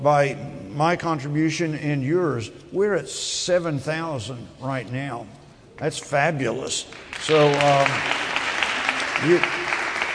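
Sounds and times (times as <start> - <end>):
speech: 0.0 - 8.3, 9.2 - 9.8
audience applause for donors at a fundraiser: 6.9 - 10.1.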